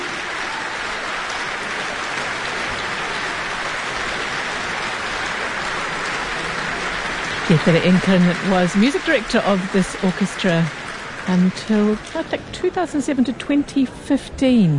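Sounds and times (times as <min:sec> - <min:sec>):
concert audience applauding: 0:00.0 - 0:13.8
speech: 0:07.5 - 0:14.7.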